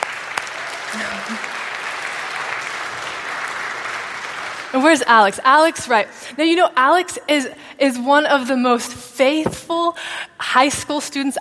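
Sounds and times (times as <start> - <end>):
audience clapping: 0.0 - 5.7
speech: 0.9 - 1.6, 4.7 - 11.3.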